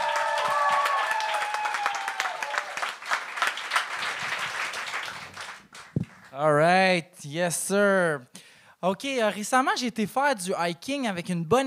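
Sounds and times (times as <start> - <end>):
audience applause: 0.0 - 6.3
speech: 6.4 - 11.6.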